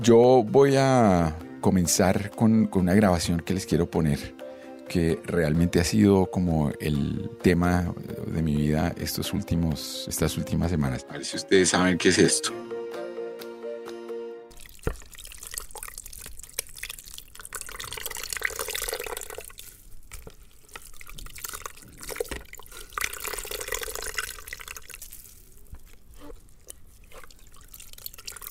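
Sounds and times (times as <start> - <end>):
speech: 0.0 - 12.8
liquid dripping from a draining leg: 14.5 - 28.5.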